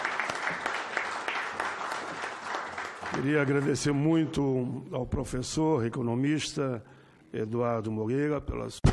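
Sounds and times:
audience applause: 0:00.0 - 0:04.1
speech: 0:03.1 - 0:08.8.

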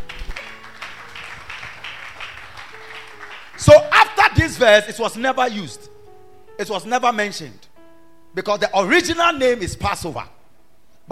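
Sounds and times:
group clapping: 0:00.0 - 0:04.2
speech: 0:03.6 - 0:05.8, 0:06.6 - 0:07.6, 0:08.3 - 0:10.4.

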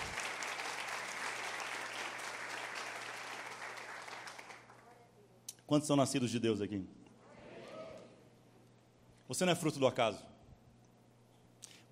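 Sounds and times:
audience applause: 0:00.0 - 0:04.8
speech: 0:05.7 - 0:07.0, 0:09.3 - 0:10.3.

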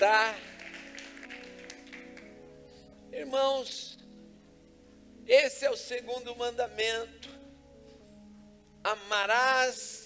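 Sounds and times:
speech: 0:00.0 - 0:00.5, 0:03.1 - 0:04.0, 0:05.3 - 0:07.4, 0:08.8 - 0:10.0
audience applause: 0:00.4 - 0:02.3.

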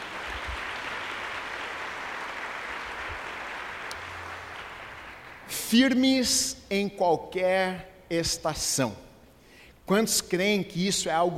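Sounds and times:
audience applause: 0:00.0 - 0:05.5
speech: 0:05.7 - 0:09.1, 0:09.9 - 0:11.3.

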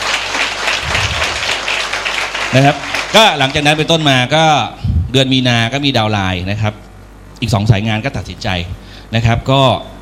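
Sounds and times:
crowd applauding: 0:00.0 - 0:04.3
speech: 0:02.5 - 0:06.8, 0:07.4 - 0:09.9.

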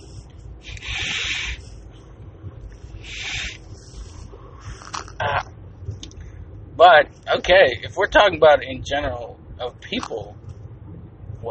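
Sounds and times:
vape being inhaled: 0:00.0 - 0:01.8, 0:02.9 - 0:05.2
speech: 0:06.8 - 0:10.4.

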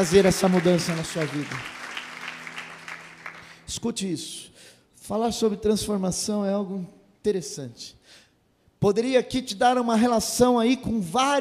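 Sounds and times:
speech: 0:00.0 - 0:01.8, 0:03.7 - 0:08.2, 0:08.8 - 0:11.4
crowd applause: 0:00.0 - 0:03.7.

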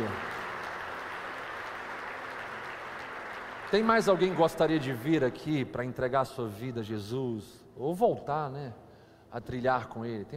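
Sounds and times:
church audience applauding: 0:00.0 - 0:05.5
speech: 0:03.7 - 0:10.3.

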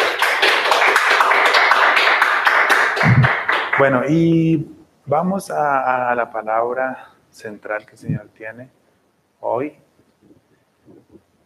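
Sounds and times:
crowd applauding: 0:00.0 - 0:04.0
speech: 0:03.8 - 0:08.8, 0:09.4 - 0:11.2.

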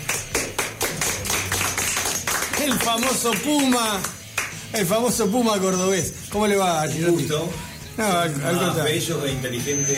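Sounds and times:
applause from a small group: 0:00.0 - 0:04.8
speech: 0:02.6 - 0:09.9.

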